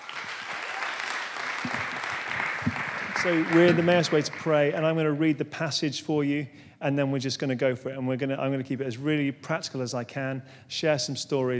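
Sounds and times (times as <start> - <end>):
audience applause welcoming a speaker to a talk on prayer: 0.0 - 4.7
speech: 3.2 - 11.5.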